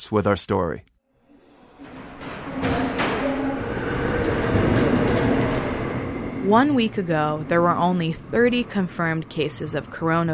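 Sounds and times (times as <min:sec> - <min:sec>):
speech: 0:00.0 - 0:00.9, 0:06.5 - 0:10.3
sharp metallic screeches and squeals of subway train: 0:01.1 - 0:09.8
subway train running with low rumble and rattling: 0:01.1 - 0:10.3.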